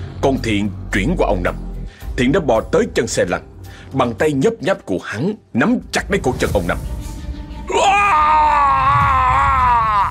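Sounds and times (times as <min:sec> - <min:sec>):
speech: 0:00.2 - 0:07.0
man screaming: 0:07.7 - 0:10.1.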